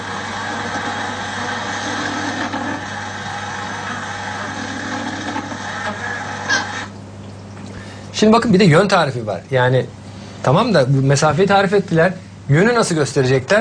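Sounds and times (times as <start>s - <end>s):
honeybees buzzing a dance call: 0.0s - 7.0s
speech: 8.2s - 13.5s.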